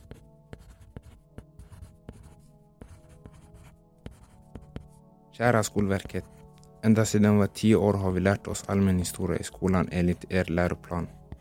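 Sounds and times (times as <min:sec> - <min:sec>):
pen scratching on paper writing a letter by hand: 0:00.0 - 0:05.0, 0:05.6 - 0:06.5, 0:10.0 - 0:11.4
speech: 0:05.4 - 0:11.2.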